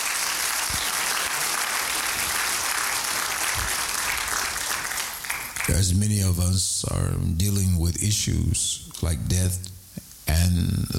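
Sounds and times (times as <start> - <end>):
people clapping hands: 0.0 - 6.0
speech: 5.8 - 9.7.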